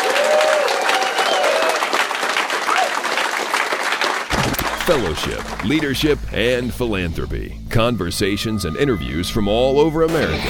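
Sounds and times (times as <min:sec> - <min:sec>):
faint whistles and cheers: 0:00.0 - 0:03.1
round of applause from a crowd: 0:00.0 - 0:06.1
speech: 0:04.9 - 0:10.4.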